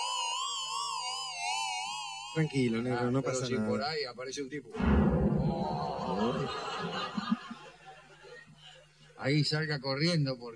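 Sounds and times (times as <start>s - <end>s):
loud electronic alarm: 0.0s - 3.0s
speech: 2.3s - 7.4s, 9.2s - 10.5s
laughter: 5.6s - 8.8s.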